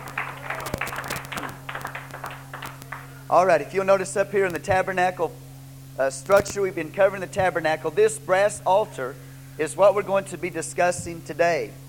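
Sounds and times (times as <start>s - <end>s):
audience clapping: 0.0s - 3.2s
low electrical hum: 0.0s - 11.8s
speech: 3.3s - 5.4s, 6.0s - 11.8s.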